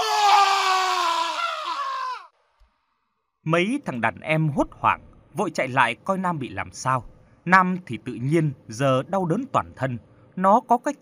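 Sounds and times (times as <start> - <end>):
man screaming in agony on the floor: 0.0 - 2.3
speech: 3.4 - 10.9.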